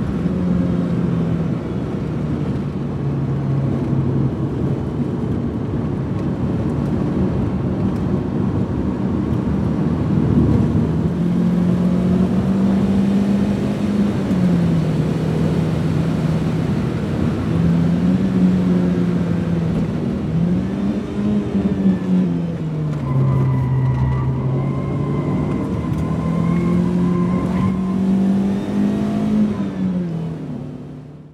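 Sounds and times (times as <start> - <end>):
compact car starting and driving heard from the interior: 0.0 - 31.3.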